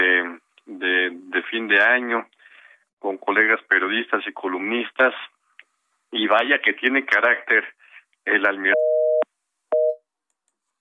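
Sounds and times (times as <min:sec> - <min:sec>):
speech: 0:01.5 - 0:02.4, 0:03.0 - 0:05.4, 0:06.1 - 0:08.8
telephone busy tone after a dropped call: 0:08.8 - 0:09.2, 0:09.8 - 0:10.0.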